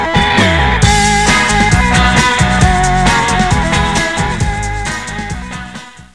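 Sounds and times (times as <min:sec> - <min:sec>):
surf: 0:00.1 - 0:05.7.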